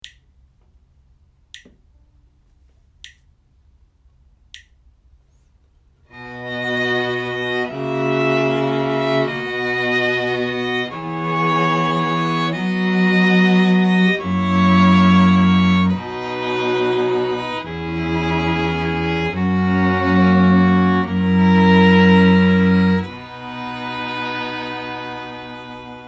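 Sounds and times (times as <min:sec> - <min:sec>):
string quartet playing: 0:06.1 - 0:26.0.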